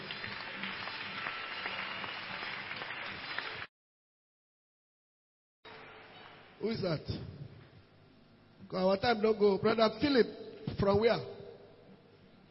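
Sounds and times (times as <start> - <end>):
audience clapping hands: 0.0 - 3.7
speech: 6.6 - 7.5, 8.7 - 11.3.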